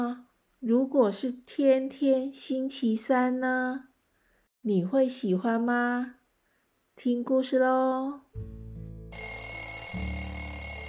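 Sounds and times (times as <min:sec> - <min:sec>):
speech: 0:00.0 - 0:03.9, 0:04.6 - 0:06.2, 0:07.0 - 0:08.6
alarm clock bell ringing: 0:09.1 - 0:10.8.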